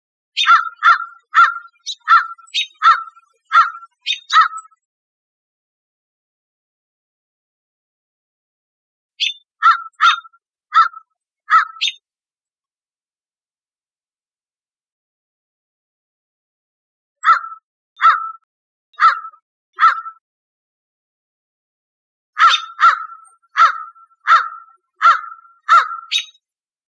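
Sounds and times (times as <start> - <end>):
American crow cawing: 0.4 - 4.8, 9.6 - 12.0, 17.2 - 20.2, 22.4 - 26.3.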